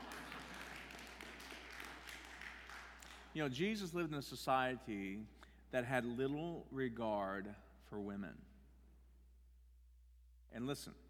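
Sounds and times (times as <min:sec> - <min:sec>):
audience clapping: 0:00.0 - 0:03.6
speech: 0:03.4 - 0:08.5, 0:10.6 - 0:11.0.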